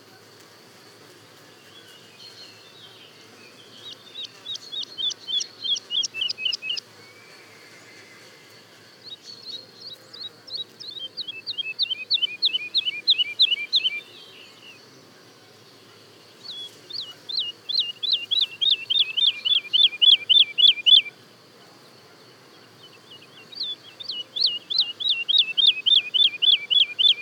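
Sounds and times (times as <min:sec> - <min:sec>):
woodlark song: 0:02.0 - 0:06.9, 0:09.1 - 0:14.8, 0:16.3 - 0:21.1, 0:22.8 - 0:27.2.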